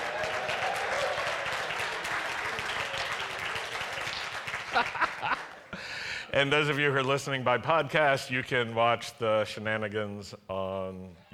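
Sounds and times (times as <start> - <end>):
audience applause: 0.0 - 5.6
laughter: 4.5 - 5.9
speech: 6.3 - 11.3.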